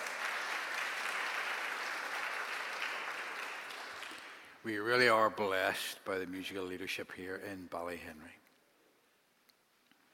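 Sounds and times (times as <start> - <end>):
audience applause for the band: 0.0 - 4.6
speech: 4.6 - 8.4.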